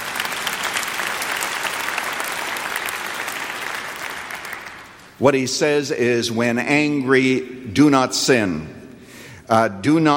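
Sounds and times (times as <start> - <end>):
audience applause: 0.0 - 5.1
speech: 5.2 - 8.8, 9.5 - 10.1.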